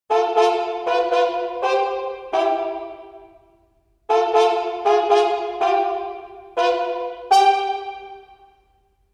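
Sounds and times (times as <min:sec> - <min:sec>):
orchestral trumpet with plunger mute: 0:00.1 - 0:03.4, 0:04.1 - 0:08.4.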